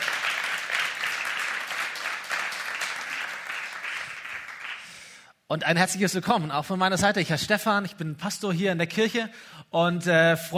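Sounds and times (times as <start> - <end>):
audience applauding the worship band: 0.0 - 5.1
speech: 5.5 - 10.5.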